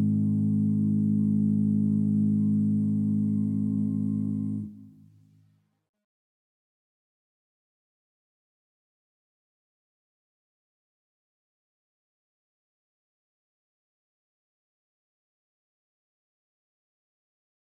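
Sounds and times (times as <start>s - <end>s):
lead melody in left channel: 0.0s - 5.0s.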